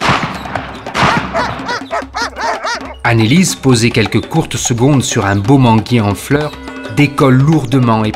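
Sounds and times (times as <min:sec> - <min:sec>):
shotgun shots: 0:00.0 - 0:01.7
speech: 0:03.0 - 0:08.1.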